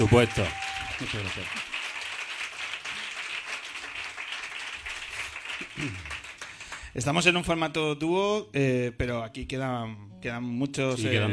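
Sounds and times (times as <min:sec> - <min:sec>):
speech: 0:00.0 - 0:01.7, 0:05.8 - 0:06.1, 0:07.0 - 0:11.3
audience applause for guitarist: 0:00.0 - 0:07.0.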